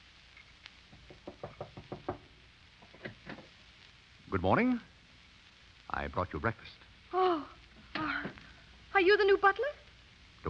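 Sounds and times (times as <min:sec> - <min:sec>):
knocking on a door: 0:00.9 - 0:02.3
speech: 0:04.4 - 0:04.9, 0:05.9 - 0:06.8, 0:09.0 - 0:09.8.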